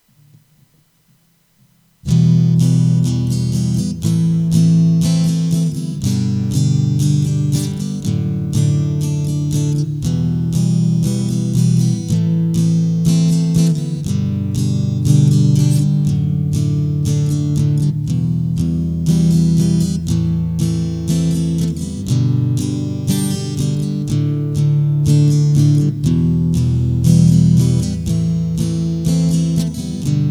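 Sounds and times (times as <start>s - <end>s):
main guitar riff: 2.0s - 30.3s.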